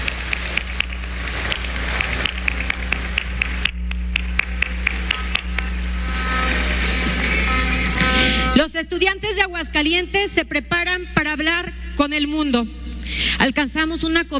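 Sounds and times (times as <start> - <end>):
audience applause: 0.0 - 8.6
speech: 8.6 - 12.8, 13.4 - 14.3.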